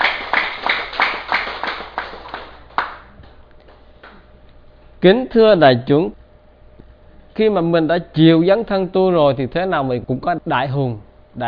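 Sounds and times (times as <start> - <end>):
audience clapping: 0.0 - 4.2
speech: 5.0 - 6.2, 7.4 - 11.4.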